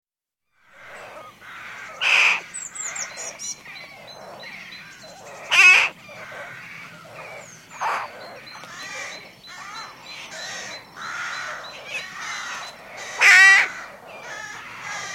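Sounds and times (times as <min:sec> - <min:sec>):
rook harsh raspy caws: 0:00.6 - 0:15.1.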